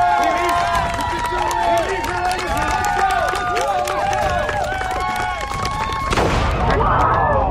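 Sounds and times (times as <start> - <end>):
crowd applause: 0.0 - 7.4.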